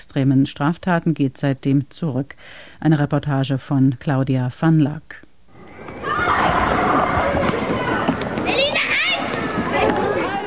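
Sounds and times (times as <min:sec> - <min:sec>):
speech: 0:00.0 - 0:05.2
children playing ball in market square: 0:05.5 - 0:10.4.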